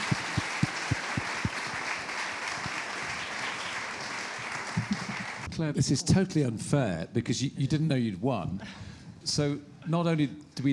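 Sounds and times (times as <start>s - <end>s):
crowd applause: 0.0s - 5.5s
speech: 5.6s - 10.7s.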